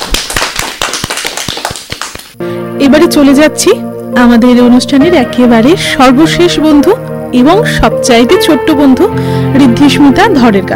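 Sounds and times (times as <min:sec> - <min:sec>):
hand clapping for a young child after a recited poem: 0:00.0 - 0:02.4
speech: 0:02.4 - 0:10.7.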